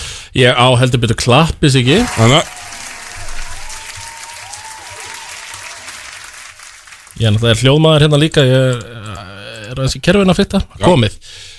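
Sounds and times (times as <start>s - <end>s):
speech: 0.4s - 2.6s, 7.2s - 11.5s
applause: 2.0s - 7.6s.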